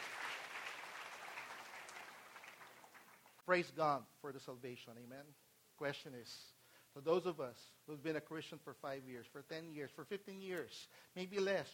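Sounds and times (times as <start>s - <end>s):
audience applause: 0.0s - 3.4s
speech: 3.5s - 11.7s.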